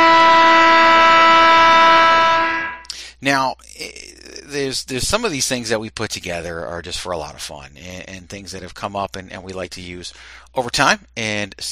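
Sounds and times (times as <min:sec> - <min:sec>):
game show buzzer: 0:00.0 - 0:02.9
speech: 0:03.2 - 0:11.7.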